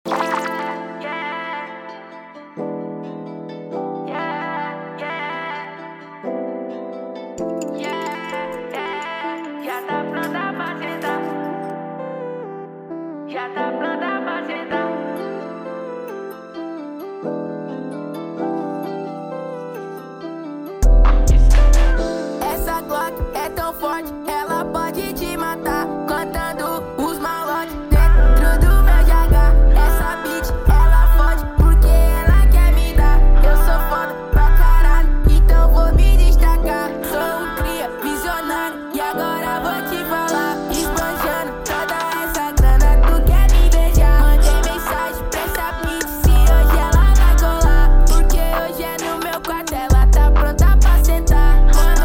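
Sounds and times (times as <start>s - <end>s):
music beat: 0.0s - 1.0s, 7.4s - 11.4s, 20.8s - 52.0s.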